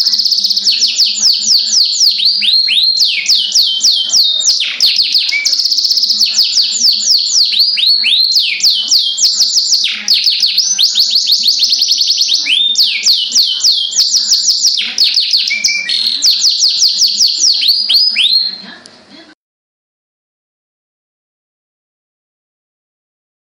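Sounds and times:
Oriental magpie-robin song: 0:00.0 - 0:18.7.

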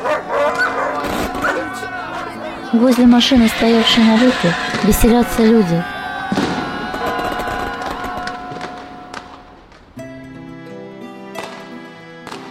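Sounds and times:
New Year fireworks bursting: 0:01.0 - 0:01.9, 0:03.0 - 0:10.1
speech: 0:02.7 - 0:05.9.

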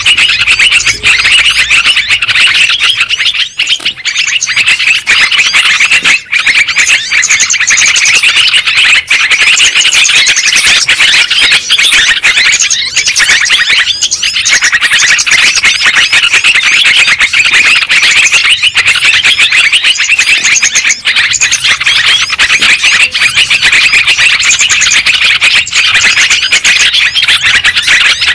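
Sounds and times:
lovebird flock chattering squeaky chirps: 0:00.0 - 0:28.3.

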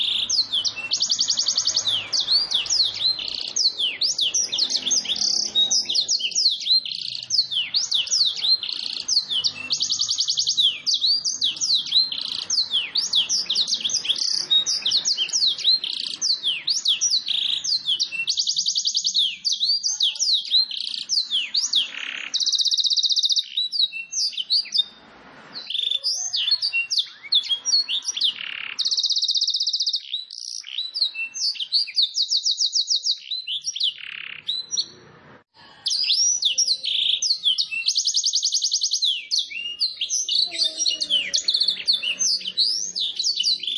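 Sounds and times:
Domestic canary singing: 0:00.0 - 0:43.7.

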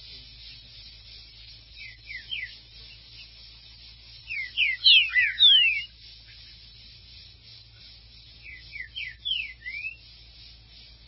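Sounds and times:
Green-winged saltator downslurred whistles: 0:01.8 - 0:02.6, 0:04.3 - 0:05.9, 0:08.4 - 0:10.0.

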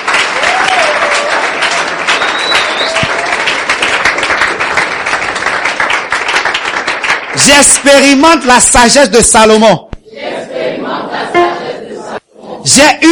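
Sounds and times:
church congregation applauding and cheering: 0:00.0 - 0:07.5
speech: 0:07.4 - 0:09.9, 0:12.7 - 0:13.0.

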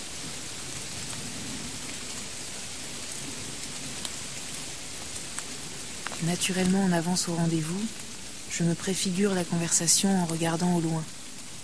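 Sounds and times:
heavy rain pouring: 0:00.0 - 0:11.6
scattered sharper raindrops ticking: 0:03.1 - 0:11.6
speech: 0:06.2 - 0:11.2.

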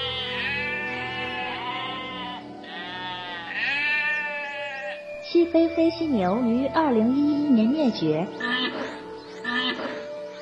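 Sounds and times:
Pyrenean ibex bleating: 0:00.0 - 0:05.1, 0:08.3 - 0:10.1
speech: 0:05.4 - 0:08.5.

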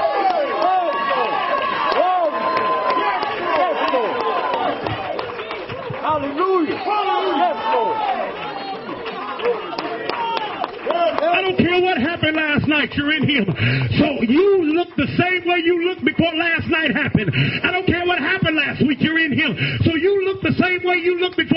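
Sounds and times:
audience shouting: 0:00.0 - 0:12.0
audience clapping: 0:00.0 - 0:16.4
speech: 0:11.5 - 0:21.5.

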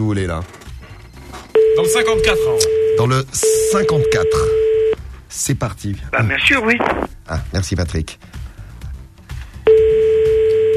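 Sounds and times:
speech: 0:00.0 - 0:00.6, 0:01.8 - 0:04.7, 0:05.3 - 0:08.4
telephone line tone of an unanswered call: 0:01.6 - 0:05.0, 0:09.7 - 0:10.7.

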